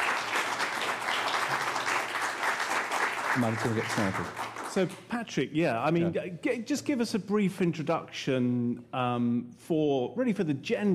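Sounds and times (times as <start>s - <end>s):
audience applause at a science talk: 0.0s - 4.9s
speech: 3.4s - 10.9s.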